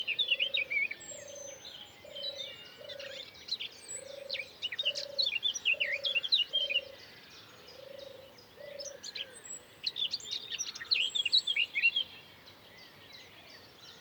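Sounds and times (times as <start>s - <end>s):
birds singing in the morning: 0.0s - 13.9s.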